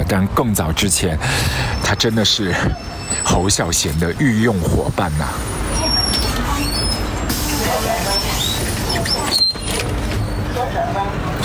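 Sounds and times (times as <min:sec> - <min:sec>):
city bus engine rumble at rush hour: 0:00.0 - 0:11.4
road noise inside a city bus: 0:00.0 - 0:11.4
speech: 0:00.1 - 0:05.9
faint indistinct voices: 0:00.2 - 0:11.4
thin high squeaks: 0:01.8 - 0:03.9, 0:05.6 - 0:10.6.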